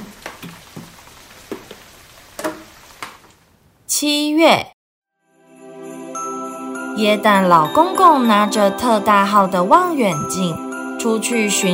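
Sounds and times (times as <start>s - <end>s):
rain dripping through a leaking roof: 0.0s - 3.7s
speech: 4.0s - 4.8s, 7.0s - 11.7s.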